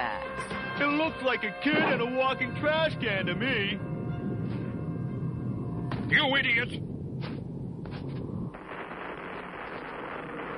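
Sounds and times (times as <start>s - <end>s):
speech: 0.8s - 3.9s, 6.1s - 6.9s
earthquake-like rumbling: 1.6s - 10.5s.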